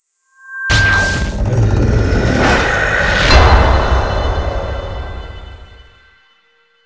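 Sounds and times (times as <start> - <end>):
dark music: 0.7 - 6.1.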